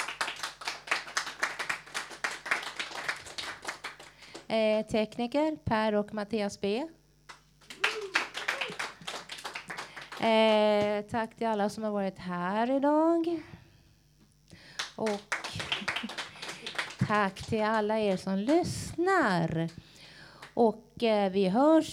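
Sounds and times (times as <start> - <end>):
studio audience applause: 0.0 - 4.5, 7.6 - 10.9, 14.8 - 18.6
speech: 4.5 - 7.0, 10.2 - 13.6, 15.0 - 15.3, 17.1 - 19.8, 20.6 - 21.9.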